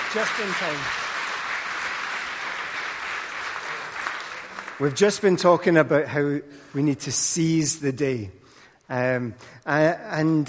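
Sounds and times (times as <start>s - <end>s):
crowd clapping: 0.0s - 5.7s
speech: 0.1s - 1.0s, 4.8s - 10.4s.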